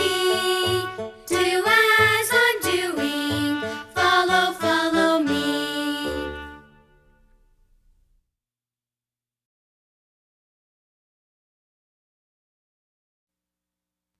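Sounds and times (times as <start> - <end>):
music: 0.0 - 8.1.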